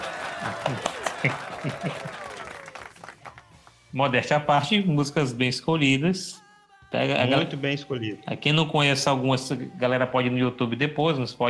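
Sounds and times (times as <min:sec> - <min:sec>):
laughter: 0:00.0 - 0:03.4
sharp hand claps: 0:00.0 - 0:03.9
speech: 0:00.4 - 0:02.2, 0:03.9 - 0:11.4.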